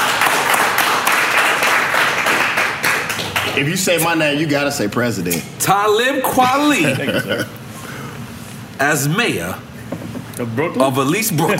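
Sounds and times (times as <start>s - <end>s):
crowd clapping: 0.0s - 3.8s
speech: 3.6s - 7.6s, 8.8s - 9.7s, 10.4s - 11.5s
laughter: 6.6s - 7.6s.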